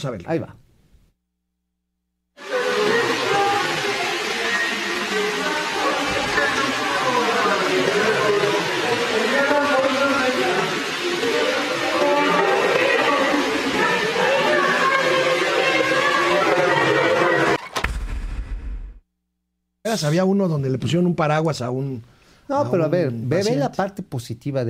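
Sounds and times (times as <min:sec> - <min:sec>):
speech: 0:00.0 - 0:00.6, 0:19.9 - 0:24.6
water cascading down a waterfall: 0:02.4 - 0:17.6.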